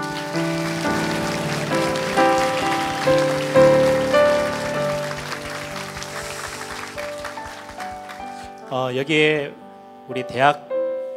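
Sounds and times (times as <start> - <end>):
audience applause: 0.0 - 8.6
speech: 8.9 - 10.7.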